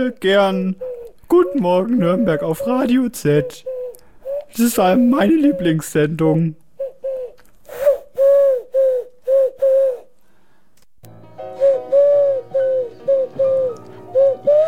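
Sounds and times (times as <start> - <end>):
speech: 0.0 - 3.7, 4.5 - 6.6
person imitating pigeon cooing: 0.6 - 5.8, 6.8 - 10.1, 11.6 - 14.6.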